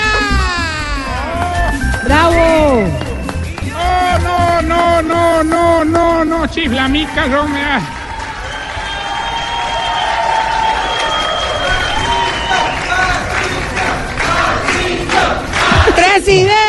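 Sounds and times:
scattered high-pitched yells: 0.0 - 1.8
crowd shouting and cheering: 0.0 - 16.6
speech: 6.4 - 8.0, 16.2 - 16.6.

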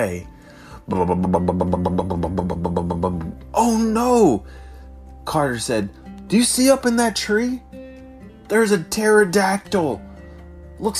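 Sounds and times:
speech: 0.0 - 0.3, 0.9 - 4.6, 5.2 - 7.7, 8.5 - 10.1, 10.8 - 10.9
voice imitating a big monster truck engine: 0.9 - 3.4.

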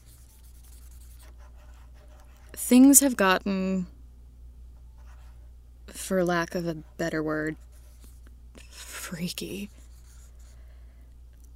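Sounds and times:
pen scratching on paper while writing by hand: 0.0 - 2.7, 6.5 - 10.5
low steady hum: 0.0 - 11.5
speech: 2.6 - 3.9, 6.1 - 7.7, 9.1 - 9.8.

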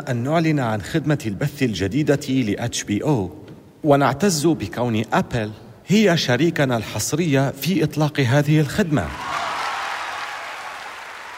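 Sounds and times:
speech: 0.0 - 9.4
audience applauding warmly: 9.1 - 11.3.

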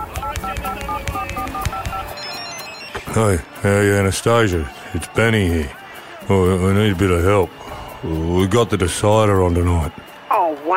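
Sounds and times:
touch-tone keypad dialing a telephone number: 0.0 - 3.1
speech: 3.0 - 10.1.

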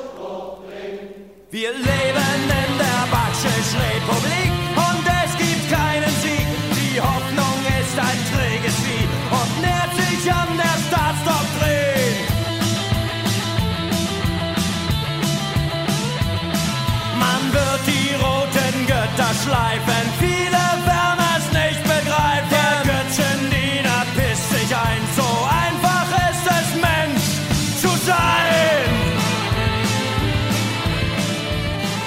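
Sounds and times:
music by an East German band: 1.8 - 32.0.

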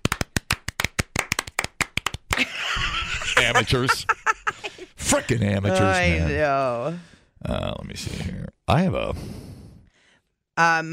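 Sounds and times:
fast hand clapping: 0.0 - 2.5
laughter: 2.4 - 6.2
speech: 3.4 - 4.2, 4.8 - 9.5, 10.6 - 10.9.

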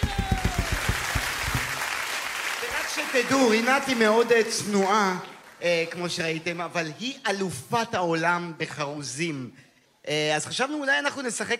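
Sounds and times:
audience applause: 0.0 - 6.0
speech: 3.0 - 11.5.

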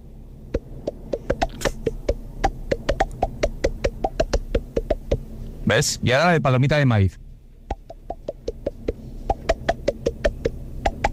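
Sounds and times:
song played by slapping hand on mouth: 0.5 - 5.2, 7.7 - 11.1
speech: 5.7 - 7.2.

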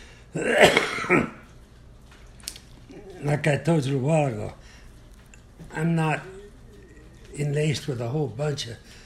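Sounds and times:
quiet breath noise: 0.0 - 0.4, 4.6 - 5.1, 8.8 - 9.0
speech: 0.3 - 1.3, 3.2 - 4.6, 5.8 - 6.4, 7.4 - 9.0
man with a slight cold coughing: 0.4 - 1.4.

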